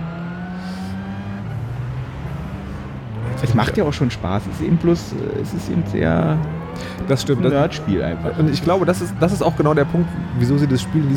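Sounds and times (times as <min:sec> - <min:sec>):
video game car engine droning: 0:00.0 - 0:11.1
speech: 0:03.4 - 0:11.1.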